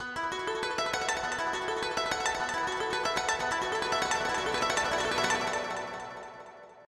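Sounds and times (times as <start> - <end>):
music: 0.0 - 6.8.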